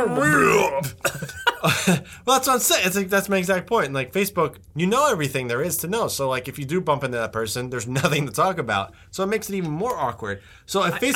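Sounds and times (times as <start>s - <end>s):
person burping: 0.0s - 1.4s
speech: 0.0s - 11.1s.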